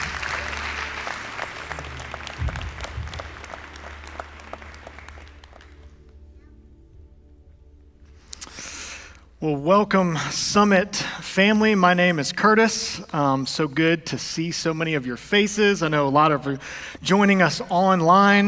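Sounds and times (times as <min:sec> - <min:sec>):
church congregation clapping to welcome the pastor: 0:00.0 - 0:06.4
speech: 0:09.4 - 0:18.4.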